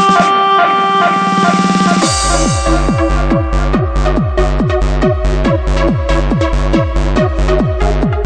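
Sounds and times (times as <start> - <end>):
party alarm: 0.2 - 8.0.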